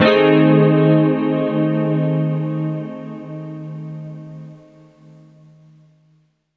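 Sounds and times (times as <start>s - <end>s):
synth pad: 0.0s - 5.1s.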